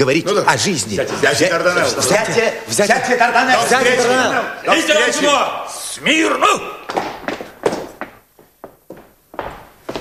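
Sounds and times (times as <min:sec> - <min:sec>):
speech: 0:00.0 - 0:07.0
stomping or running footsteps on a wooden floor: 0:06.9 - 0:09.9.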